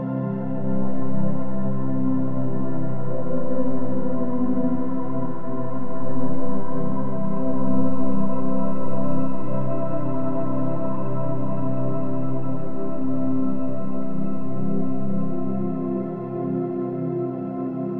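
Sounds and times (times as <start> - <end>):
floating outer space atmosphere: 0.2 - 17.8.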